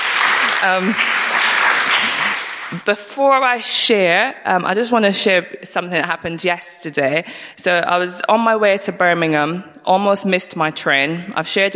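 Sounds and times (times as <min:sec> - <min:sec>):
audience applause: 0:00.0 - 0:02.9
speech: 0:00.6 - 0:01.1, 0:02.7 - 0:11.7.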